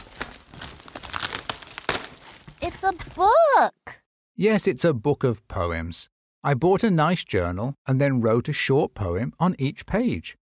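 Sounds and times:
wrapping paper crinkling as a gift is unwrapped: 0.0 - 3.4
speech: 2.8 - 3.8, 4.4 - 10.4.

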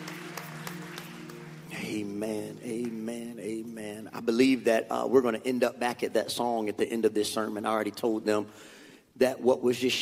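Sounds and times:
audience hand clapping: 0.0 - 3.0
sustained low musical tone: 0.0 - 4.0
speech: 1.9 - 9.9.

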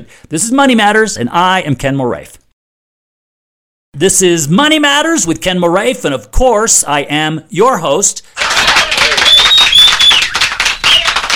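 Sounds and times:
speech: 0.0 - 2.4, 4.0 - 9.1
applause sound effect: 8.4 - 11.3.

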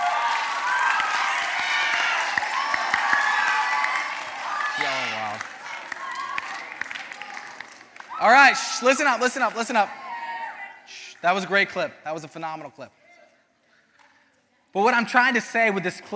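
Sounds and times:
audience clapping and cheering: 0.0 - 10.4
speech: 8.2 - 10.0, 11.2 - 13.0, 14.8 - 16.1.

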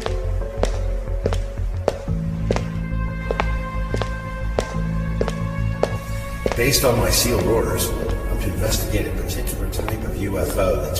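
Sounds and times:
footsteps walking along an empty sidewalk: 0.0 - 10.9
speech: 6.6 - 10.9.

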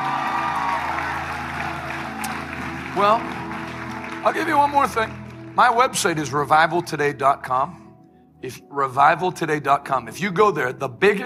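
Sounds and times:
audience applause: 0.0 - 6.0
speech: 3.0 - 3.4, 4.2 - 7.8, 8.4 - 11.2.

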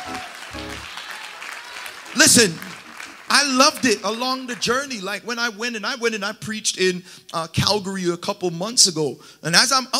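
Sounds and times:
crowd clapping: 0.0 - 5.0
speech: 2.3 - 2.7, 3.3 - 9.9.

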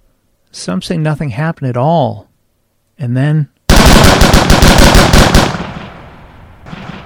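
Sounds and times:
speech: 0.6 - 2.3, 3.0 - 3.5
police gunfire into a crowd: 3.7 - 6.1.

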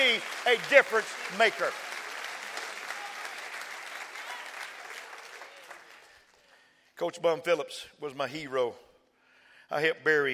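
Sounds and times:
audience applauding: 0.0 - 6.7
speech: 0.2 - 1.9, 7.0 - 8.8, 9.7 - 10.3.

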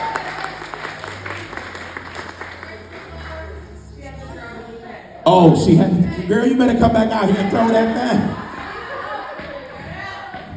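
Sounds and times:
wedding guests applauding: 0.0 - 3.7, 7.9 - 10.5
speech: 5.3 - 8.4
laughter: 7.2 - 10.5.

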